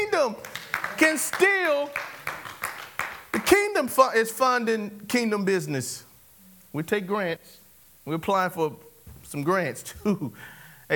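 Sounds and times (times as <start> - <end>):
audience clapping hands: 0.0 - 3.8
speech: 0.2 - 2.2, 3.5 - 6.1, 6.7 - 10.9.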